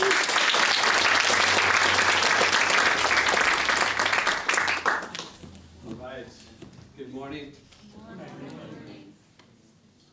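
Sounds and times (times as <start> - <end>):
audience applause welcoming a speaker at a church gathering: 0.0 - 5.4.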